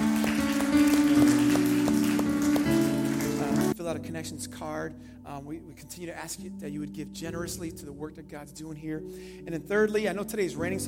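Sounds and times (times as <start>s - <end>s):
audience clapping hands: 0.0s - 3.8s
sustained keyboard chords: 0.0s - 10.8s
speech: 4.0s - 10.8s.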